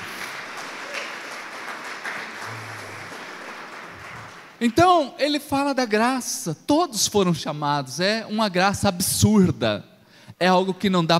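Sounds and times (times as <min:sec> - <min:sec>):
loud applause: 0:00.0 - 0:04.8
speech: 0:04.6 - 0:11.1.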